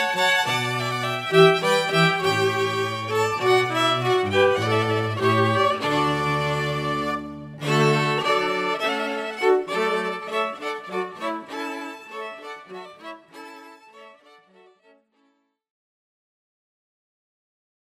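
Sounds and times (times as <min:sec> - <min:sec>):
string quartet playing hornpipe: 0:00.0 - 0:13.1.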